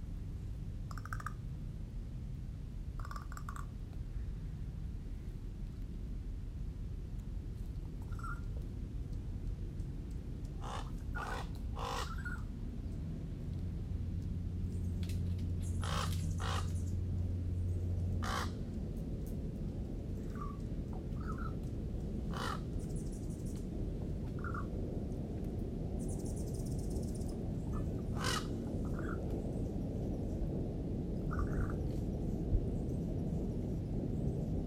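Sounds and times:
steady low rumble: 0.0s - 34.6s
crows cawing: 0.9s - 1.4s, 3.0s - 3.7s, 10.6s - 12.4s, 15.8s - 16.8s, 18.2s - 18.6s, 22.3s - 22.7s, 27.7s - 29.2s.

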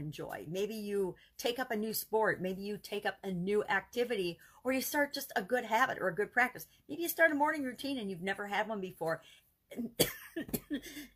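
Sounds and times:
speech: 0.0s - 11.1s
person coughing after inhaling wrong: 9.8s - 11.1s.

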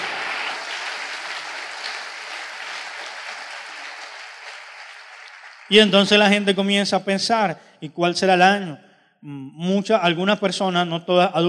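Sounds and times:
audience applause: 0.0s - 6.2s
speech: 5.7s - 11.4s.

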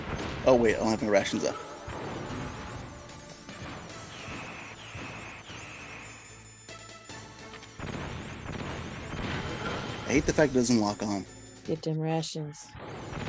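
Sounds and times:
grenade explosion in the video game Metal Gear Solid Integral: 0.0s - 6.2s, 7.6s - 11.2s, 12.8s - 13.2s
game effects and tones: 0.0s - 13.2s
speech: 0.5s - 1.7s, 10.1s - 13.1s.

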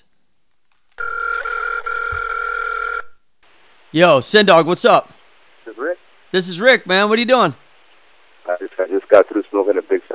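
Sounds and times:
telephone ringing as call is placed: 1.0s - 3.2s
speech: 3.9s - 7.6s, 9.1s - 10.1s.

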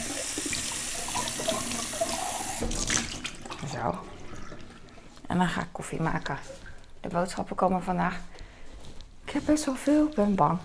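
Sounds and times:
tea glass rinsed under running tap: 0.0s - 5.1s
speech: 3.8s - 4.2s, 5.3s - 8.4s, 9.3s - 10.6s.

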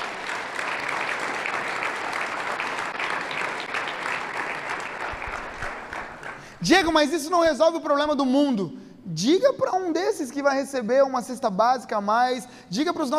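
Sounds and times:
audience applauding: 0.0s - 7.1s
speech: 6.6s - 13.1s.

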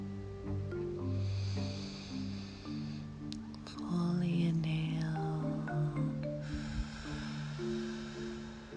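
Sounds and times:
sustained low musical tones: 0.0s - 8.7s
slow deep breath in and out: 1.0s - 3.3s, 6.2s - 8.7s.

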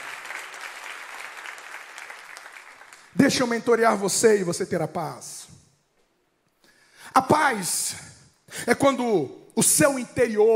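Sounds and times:
large gathering applauding: 0.0s - 3.2s
speech: 3.2s - 5.5s, 7.2s - 10.5s.

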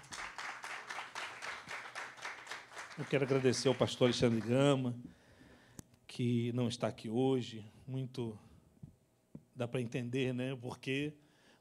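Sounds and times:
rhythmic audience applause: 0.0s - 4.9s
speech: 3.0s - 5.2s, 6.2s - 8.5s, 9.6s - 11.6s.

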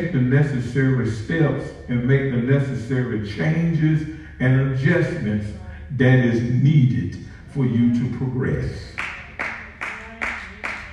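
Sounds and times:
speech: 0.0s - 9.0s
audience clapping: 9.0s - 10.9s.

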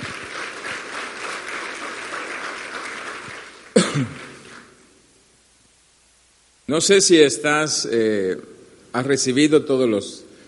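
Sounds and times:
audience applause: 0.0s - 4.8s
speech: 4.0s - 4.3s, 6.7s - 10.2s.

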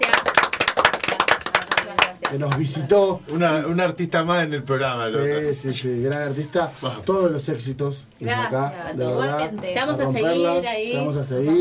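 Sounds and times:
crowd applause: 0.0s - 2.8s
speech: 2.3s - 11.5s.

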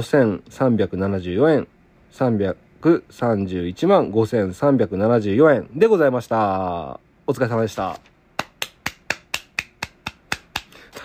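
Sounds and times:
speech: 0.0s - 8.1s
hand clapping: 8.4s - 11.0s.

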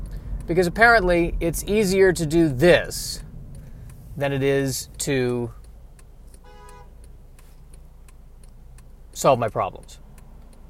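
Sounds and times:
faint ticking clicks: 0.0s - 10.6s
road traffic rumble: 0.0s - 10.6s
speech: 0.5s - 3.3s, 4.2s - 5.6s, 9.2s - 10.0s
horn-like tone: 6.4s - 7.0s.

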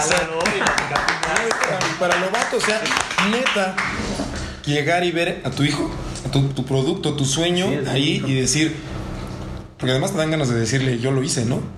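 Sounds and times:
brief applause: 0.0s - 4.3s
speech: 0.0s - 9.0s, 9.8s - 11.7s.

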